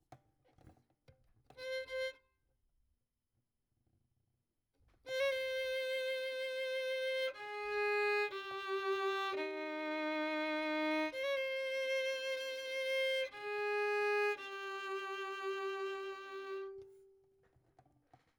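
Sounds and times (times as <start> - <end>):
violin: 1.5 - 2.3, 5.1 - 17.6.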